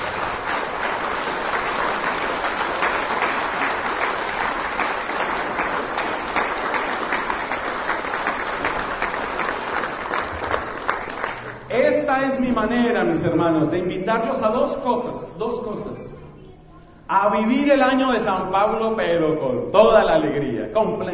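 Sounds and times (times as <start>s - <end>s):
audience applauding: 0.0s - 11.7s
speech: 12.5s - 16.2s, 17.1s - 21.1s.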